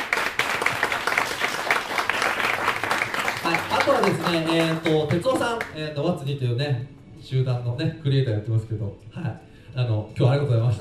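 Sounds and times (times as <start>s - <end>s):
audience applause: 0.0s - 5.7s
speech: 4.0s - 10.7s.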